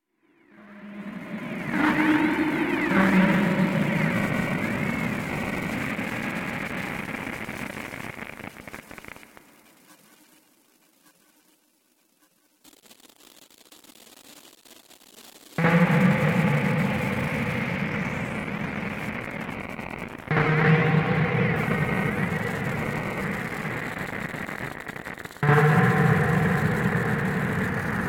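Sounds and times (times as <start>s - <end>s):
noise: 0.0s - 28.0s.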